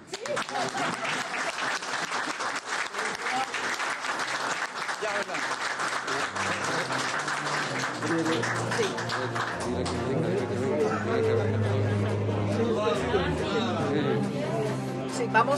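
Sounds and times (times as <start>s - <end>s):
audience applause: 0.0s - 13.4s
laughter: 0.1s - 3.5s, 6.1s - 14.5s
indistinct voices: 6.1s - 15.5s
speech: 9.1s - 11.7s, 15.2s - 15.5s.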